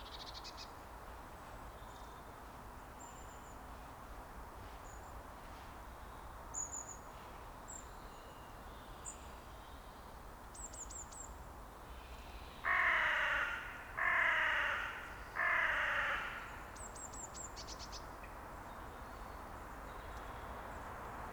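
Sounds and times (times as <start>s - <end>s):
carrion crow cawing: 12.6s - 16.7s.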